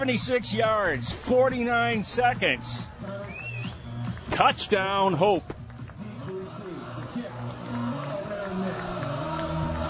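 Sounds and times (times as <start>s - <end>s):
speech: 0.0s - 3.4s, 4.4s - 5.6s
homecoming crowd cheering: 1.9s - 9.8s.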